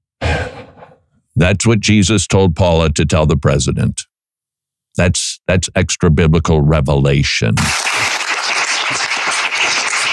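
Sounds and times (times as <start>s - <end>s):
speech: 1.4s - 4.1s, 5.0s - 8.0s
audience clapping during a church sermon: 7.7s - 10.1s.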